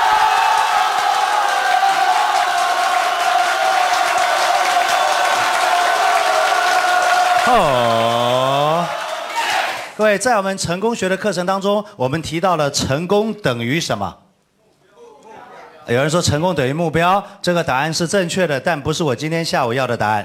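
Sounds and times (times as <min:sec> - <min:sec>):
audience applause: 0:00.0 - 0:10.0
speech: 0:07.5 - 0:08.1, 0:10.0 - 0:14.2, 0:15.9 - 0:20.2.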